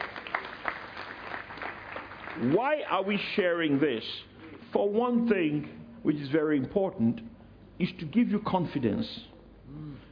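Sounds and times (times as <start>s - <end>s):
church congregation clapping as a clap offering during a sermon: 0.0s - 4.3s
speech: 2.4s - 9.8s.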